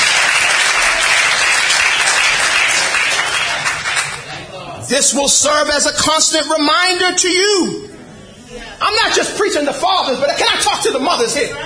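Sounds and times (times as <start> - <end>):
audience clapping: 0.0 - 4.4
speech: 4.9 - 7.9, 8.8 - 11.6.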